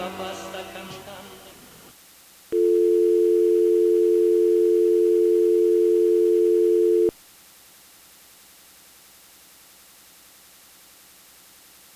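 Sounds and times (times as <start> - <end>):
telephone dial tone on a faulty long-distance call: 2.6 - 7.1.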